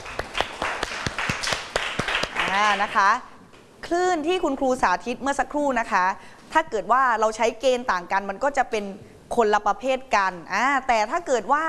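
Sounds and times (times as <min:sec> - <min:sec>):
small group clapping in a classroom: 0:00.0 - 0:03.2
speech: 0:02.5 - 0:11.6.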